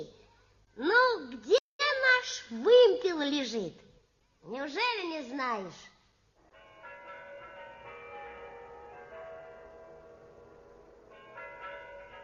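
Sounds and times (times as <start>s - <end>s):
speech: 0.8s - 1.6s, 2.2s - 3.8s, 4.4s - 5.9s
Kremlin tower clock chimes striking: 6.5s - 12.2s.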